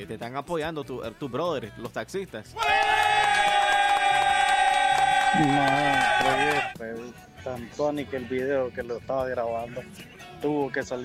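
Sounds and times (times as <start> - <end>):
speech: 0.0 - 3.5, 5.3 - 11.0
crowd cheering and clapping: 2.6 - 6.8.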